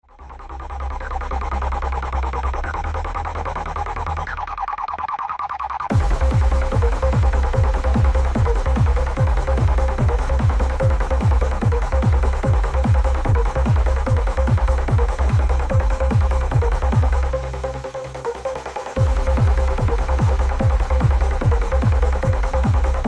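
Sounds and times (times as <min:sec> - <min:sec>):
DIY rave techno beats: 0:01.0 - 0:23.0.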